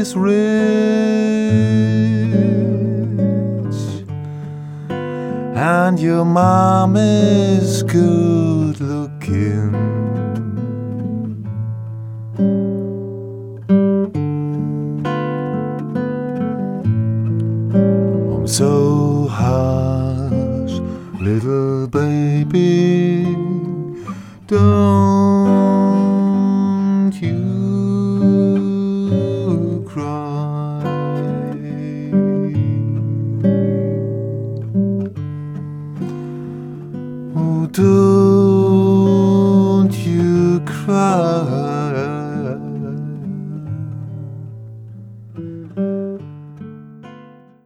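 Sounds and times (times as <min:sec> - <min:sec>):
person singing: 0:00.0 - 0:10.5, 0:18.2 - 0:34.2, 0:37.3 - 0:44.7
guitar: 0:00.0 - 0:47.6.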